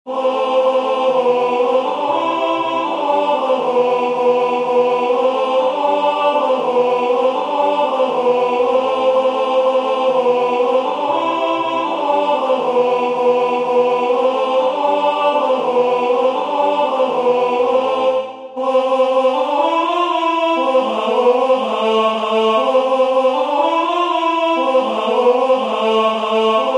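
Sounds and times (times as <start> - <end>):
tenor singing: 0.1 - 26.7.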